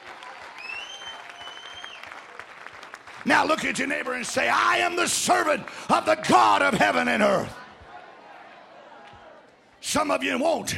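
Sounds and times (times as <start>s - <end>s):
audience clapping: 0.0s - 7.4s
speech: 3.2s - 7.6s, 9.9s - 10.7s.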